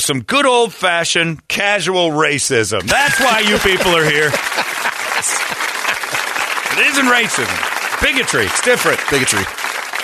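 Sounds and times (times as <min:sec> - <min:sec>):
speech: 0:00.0 - 0:05.3, 0:06.8 - 0:09.7
laughter: 0:02.8 - 0:09.4
audience applause: 0:02.9 - 0:10.0.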